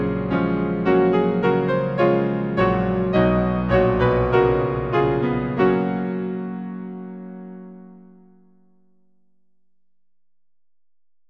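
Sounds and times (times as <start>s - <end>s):
hymn on piano: 0.0s - 8.5s.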